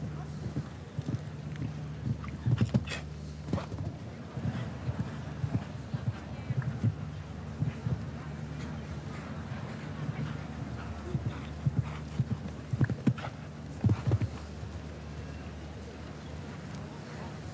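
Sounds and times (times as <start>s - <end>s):
horse hoofbeats approaching a jump: 0.0s - 15.6s
low steady hum: 0.0s - 17.5s.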